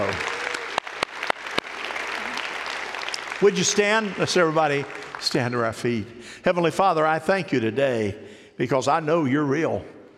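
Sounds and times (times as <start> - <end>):
audience clapping: 0.0 - 6.0
speech: 3.4 - 9.9.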